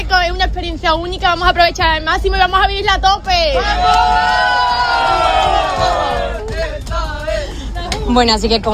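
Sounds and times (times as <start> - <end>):
speech: 0.2 - 6.2, 8.1 - 8.7
whoops: 3.6 - 6.5
crowd of young Catholic pilgrims singing and cheering: 3.6 - 7.8.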